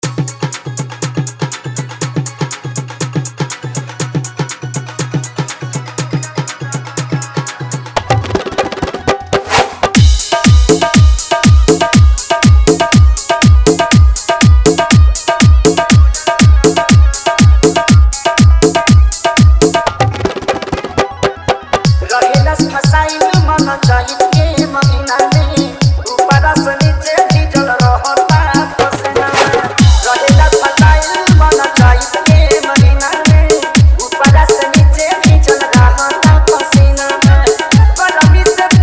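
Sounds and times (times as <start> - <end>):
dholak with hard bass: 0.0 - 38.8.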